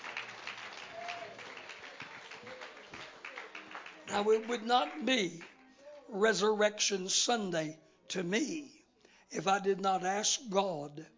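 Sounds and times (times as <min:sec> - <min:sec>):
audience clapping hands: 0:00.0 - 0:05.6
speech: 0:04.1 - 0:05.5, 0:06.1 - 0:11.1.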